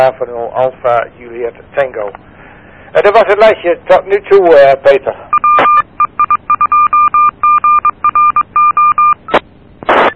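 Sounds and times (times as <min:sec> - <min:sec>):
speech: 0:00.0 - 0:02.3, 0:02.9 - 0:05.4
electronic beep tones: 0:05.3 - 0:10.1.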